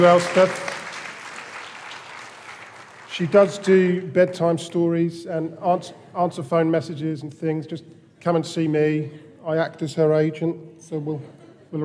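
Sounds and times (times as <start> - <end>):
speech: 0.0 - 0.7, 3.2 - 11.8
roomful of people applauding: 0.0 - 3.6.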